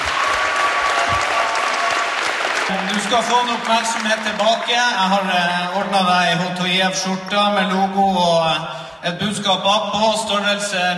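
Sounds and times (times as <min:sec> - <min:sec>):
audience applause at a sports club event: 0:00.0 - 0:06.0
speech: 0:02.7 - 0:10.9.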